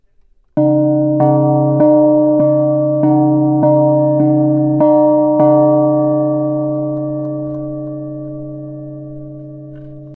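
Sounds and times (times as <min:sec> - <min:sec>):
gong: 0:00.6 - 0:10.1.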